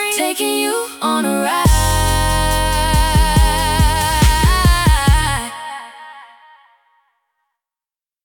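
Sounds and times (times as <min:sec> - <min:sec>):
R&B music: 0:00.0 - 0:05.5.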